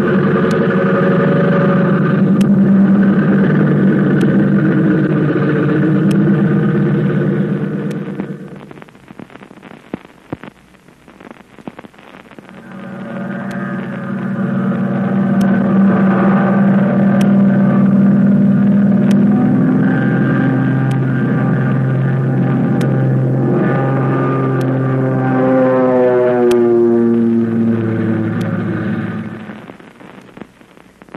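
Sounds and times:
American airplane engine roaring in flight: 0:00.0 - 0:08.7, 0:12.4 - 0:29.8.

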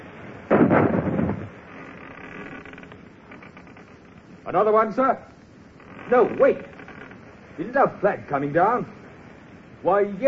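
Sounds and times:
ship's cannon firing into another ship's rigging in a naval battle: 0:00.5 - 0:01.6
speech: 0:04.5 - 0:05.3, 0:06.1 - 0:06.7, 0:07.6 - 0:09.0, 0:09.8 - 0:10.2.

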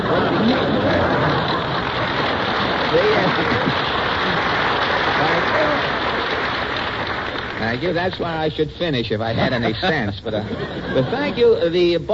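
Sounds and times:
laughter: 0:00.0 - 0:06.1, 0:09.2 - 0:11.9
studio audience applause: 0:00.0 - 0:08.6
speech: 0:07.7 - 0:12.1.

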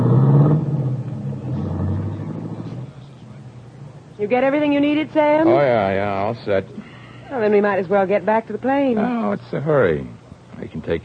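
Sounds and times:
limousine engine rumbling as it drives off: 0:00.0 - 0:04.2
speech: 0:04.2 - 0:11.0.

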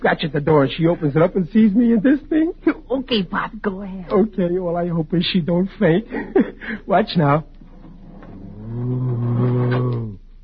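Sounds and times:
speech: 0:00.1 - 0:07.5
man growling playfully imitating a creature: 0:08.3 - 0:10.2.

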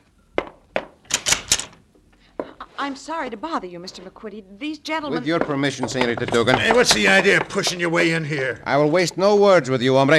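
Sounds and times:
speech: 0:02.8 - 0:10.1
knocking on a door: 0:05.2 - 0:08.3.

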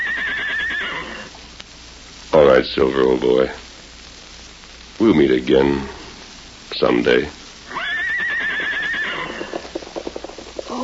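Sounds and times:
horse neighing: 0:00.0 - 0:01.3, 0:07.7 - 0:09.8
speech: 0:02.4 - 0:03.6, 0:05.0 - 0:06.0, 0:06.8 - 0:07.4.

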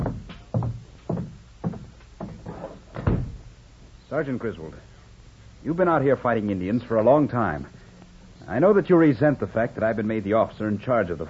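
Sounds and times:
dull wooden thumps and knocks: 0:00.0 - 0:03.5
door being closed: 0:01.7 - 0:03.5
speech: 0:04.1 - 0:04.9, 0:05.6 - 0:07.8, 0:08.4 - 0:11.2.

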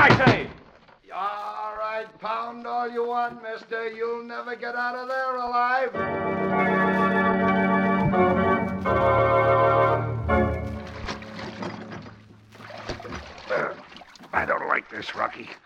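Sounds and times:
speech: 0:02.0 - 0:10.5, 0:14.4 - 0:15.6
oars dipping and splashing through water: 0:08.0 - 0:15.5.

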